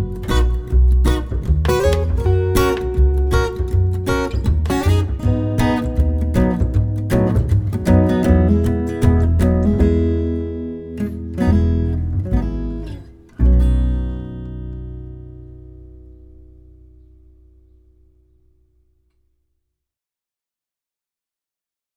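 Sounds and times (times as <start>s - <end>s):
acoustic duo instrumental: 0.0s - 17.7s.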